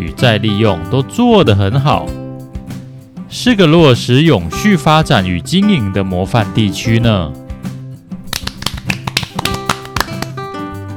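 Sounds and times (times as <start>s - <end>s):
speech: 0.1s - 2.2s, 3.3s - 7.4s
applause: 8.3s - 10.4s.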